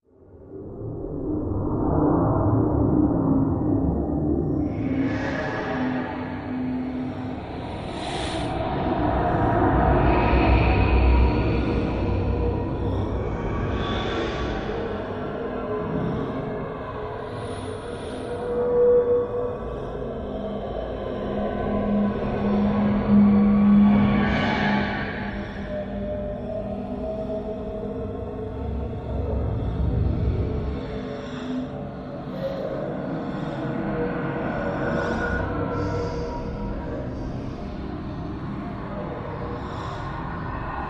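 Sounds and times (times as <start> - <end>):
otherworldly ambience: 0.1 - 40.8.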